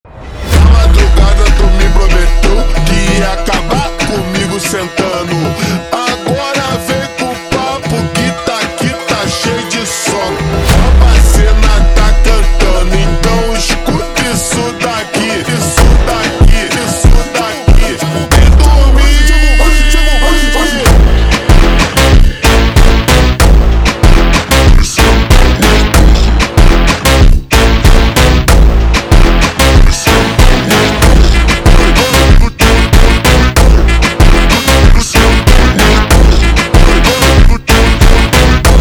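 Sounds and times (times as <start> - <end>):
slowed funk music: 0.1 - 38.7.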